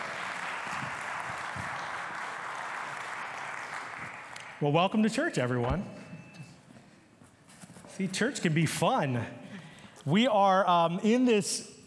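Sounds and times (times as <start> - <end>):
church congregation applauding the worship team: 0.0 - 5.2
speech: 4.6 - 6.0, 8.0 - 9.4, 10.0 - 11.7.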